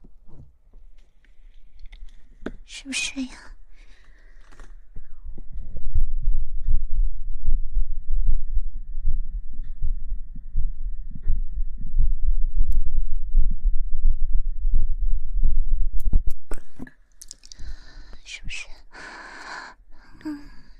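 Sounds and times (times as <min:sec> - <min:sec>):
speech: 0:02.7 - 0:03.6
fast heartbeat heard through chest: 0:04.8 - 0:16.8.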